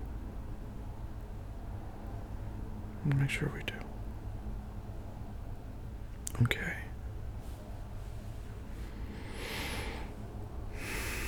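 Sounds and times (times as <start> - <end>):
constant low hiss: 0.0 - 11.2
speech: 3.0 - 3.9, 6.4 - 6.7
person gasping breathlessly: 9.1 - 10.2, 10.8 - 11.2.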